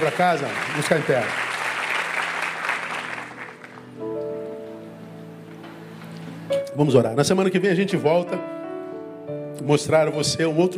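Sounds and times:
speech: 0.0 - 1.5, 6.8 - 8.6, 9.6 - 10.7
audience applause: 0.0 - 4.0.

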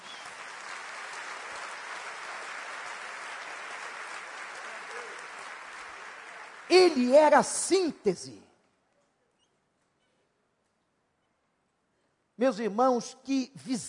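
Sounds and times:
audience applause: 0.0 - 7.4
speech: 6.7 - 8.4, 12.4 - 13.8.

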